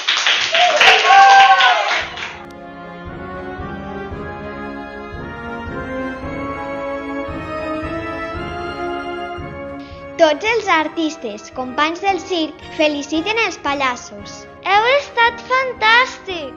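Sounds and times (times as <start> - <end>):
audience applause: 0.0 - 2.5
speech: 10.3 - 16.5.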